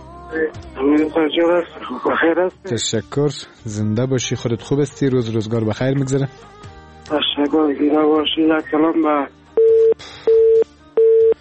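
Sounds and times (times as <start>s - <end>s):
man speaking on a phone call to a radio station: 0.3s - 6.4s, 7.1s - 9.3s
speech: 0.3s - 9.4s
busy-tone beeps: 9.6s - 11.3s.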